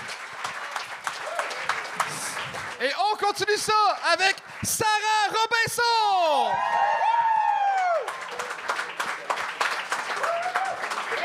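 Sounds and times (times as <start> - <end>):
audience applause: 0.0 - 11.2
speech: 2.8 - 7.1.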